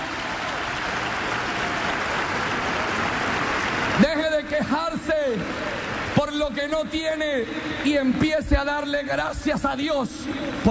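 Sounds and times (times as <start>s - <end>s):
audience applause: 0.0s - 8.1s
speech: 4.0s - 5.4s, 6.4s - 10.7s.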